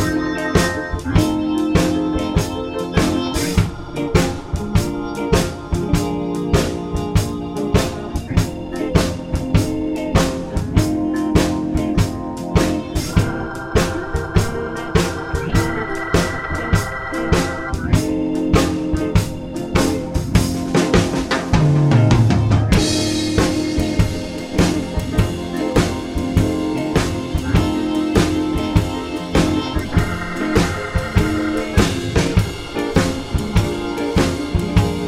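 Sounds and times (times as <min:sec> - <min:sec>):
basic blues in F: 0:00.0 - 0:35.0.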